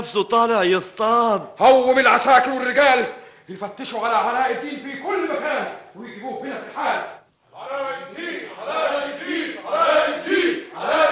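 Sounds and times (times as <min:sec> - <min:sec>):
speech: 0:00.0 - 0:11.1
crowd chanting demanding a release: 0:07.8 - 0:11.1.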